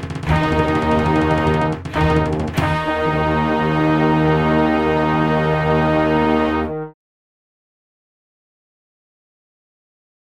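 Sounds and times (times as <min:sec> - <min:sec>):
brass: 0:00.0 - 0:07.0
strings: 0:00.0 - 0:07.0
timpani: 0:00.0 - 0:07.0.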